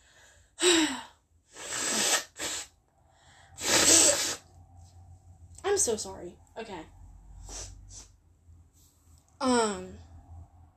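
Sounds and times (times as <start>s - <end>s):
person blowing their nose: 1.5s - 2.8s, 3.6s - 4.5s, 7.4s - 8.1s
speech: 5.8s - 7.0s.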